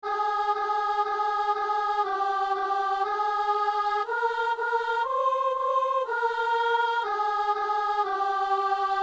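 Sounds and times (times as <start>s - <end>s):
soprano singing a kyrie of a mass: 0.0s - 9.0s.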